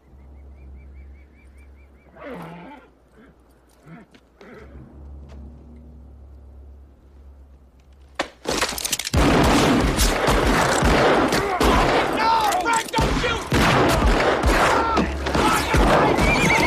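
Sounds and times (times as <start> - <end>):
gunfire from the OK Corral gunfight scene: 9.2 - 12.2, 13.0 - 16.6.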